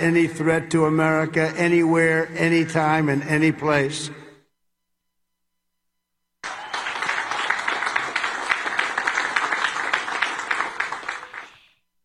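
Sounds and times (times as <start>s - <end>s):
speech: 0.0s - 4.2s
light scattered applause from a crowd: 6.4s - 11.8s.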